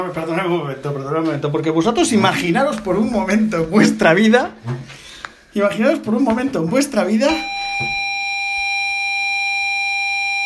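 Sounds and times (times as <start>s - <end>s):
speech: 0.0s - 8.0s
retro video game loading sound: 7.3s - 10.4s.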